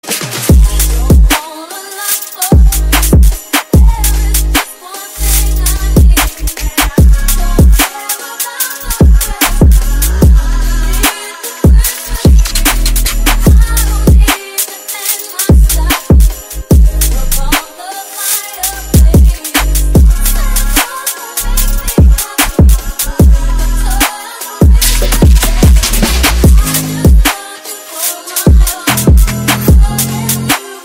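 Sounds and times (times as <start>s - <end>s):
drill music remix: 0.0s - 30.8s.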